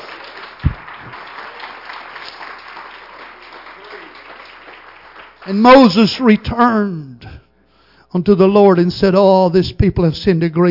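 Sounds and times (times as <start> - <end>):
audience applause, hand clapping: 0.0 - 6.2
speech: 5.5 - 7.3, 8.1 - 10.6.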